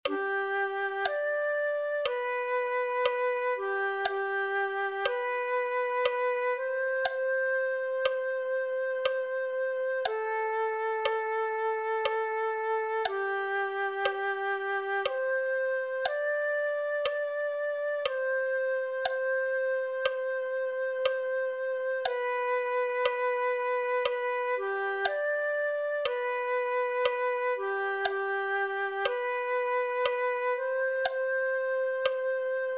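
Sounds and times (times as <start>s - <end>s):
flute: 0.0s - 32.7s.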